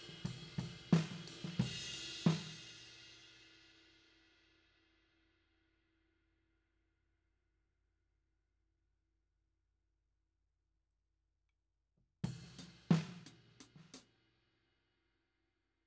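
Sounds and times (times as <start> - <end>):
tom drum: 0.0 - 2.8, 12.3 - 14.0.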